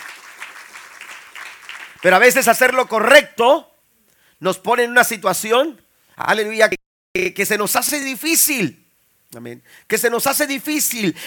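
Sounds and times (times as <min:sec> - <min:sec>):
audience applause: 0:00.0 - 0:02.5
speech: 0:02.0 - 0:03.7, 0:04.4 - 0:11.2.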